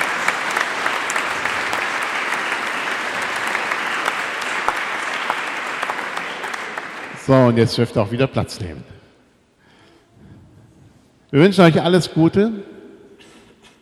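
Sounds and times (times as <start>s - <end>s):
audience applauding: 0.0s - 7.8s
speech: 7.3s - 8.9s, 11.3s - 12.7s.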